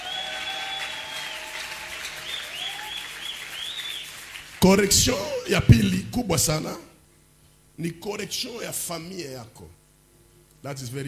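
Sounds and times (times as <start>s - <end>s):
church congregation clapping: 0.0s - 5.5s
speech: 4.6s - 6.9s, 7.8s - 9.8s, 10.6s - 11.0s.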